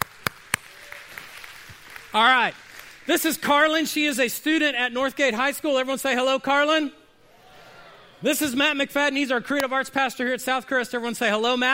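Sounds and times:
audience applause: 0.0s - 3.1s
speech: 2.1s - 7.0s, 8.2s - 11.7s.

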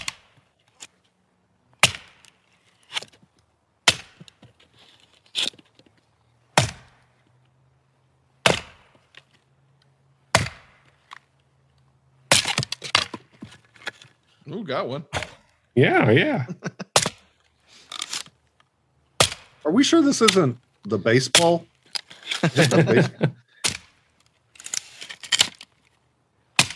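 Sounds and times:
axe chopping wood: 0.0s - 0.5s, 1.7s - 3.1s, 3.8s - 4.5s, 6.5s - 7.1s, 8.4s - 9.3s, 10.3s - 11.0s, 12.2s - 13.4s, 16.9s - 17.3s, 19.2s - 19.6s, 23.6s - 24.0s, 26.5s - 26.7s
speech: 14.5s - 15.2s, 15.8s - 16.6s, 19.7s - 21.7s, 22.4s - 23.4s
laughter: 16.1s - 17.0s, 22.2s - 23.5s.

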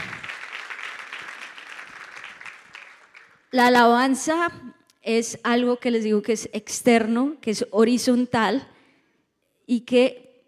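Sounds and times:
audience applause: 0.0s - 3.5s
speech: 3.5s - 8.7s, 9.7s - 10.2s.

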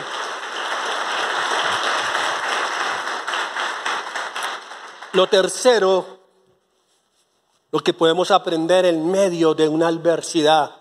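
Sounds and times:
loud applause: 0.0s - 5.8s
speech: 5.2s - 6.2s, 7.7s - 10.7s.

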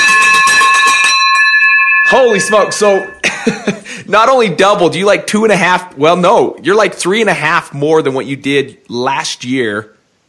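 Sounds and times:
victory bell ringing: 0.0s - 3.8s
speech: 2.1s - 10.0s
laughter: 3.2s - 4.0s.

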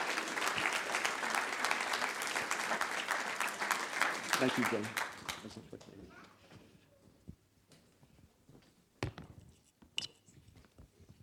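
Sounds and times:
church audience applauding to welcome a speaker: 0.0s - 6.0s
speech: 4.4s - 6.1s.

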